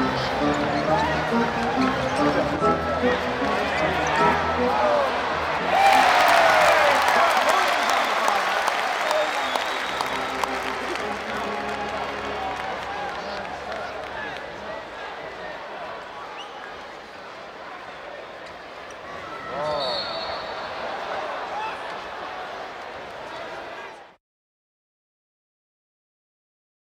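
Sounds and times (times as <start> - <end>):
basketball crowd: 0.0 - 24.2.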